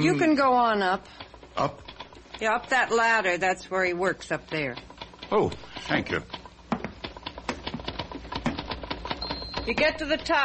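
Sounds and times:
speech: 0.0 - 6.4, 9.6 - 10.4
typewriter typing: 1.8 - 3.5, 4.2 - 10.4.

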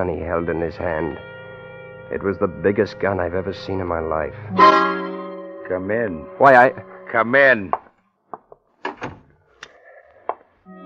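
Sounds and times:
speech: 0.0 - 1.3, 2.1 - 5.0, 5.7 - 7.8
door swinging shut with wooden knocks and latch clicks: 8.8 - 9.3.

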